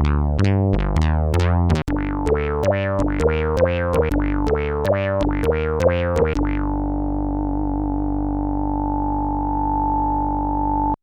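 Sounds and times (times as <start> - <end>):
synthesizer bass: 0.0 - 11.0.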